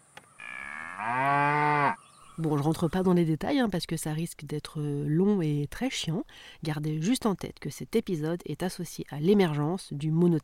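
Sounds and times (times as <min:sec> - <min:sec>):
cow mooing sound effect: 0:00.4 - 0:02.0
speech: 0:02.4 - 0:10.4.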